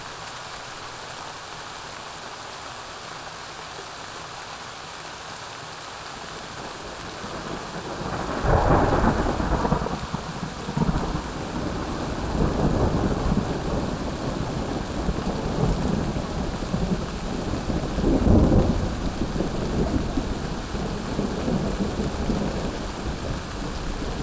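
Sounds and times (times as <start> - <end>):
summer thunderstorm: 6.5 - 24.2.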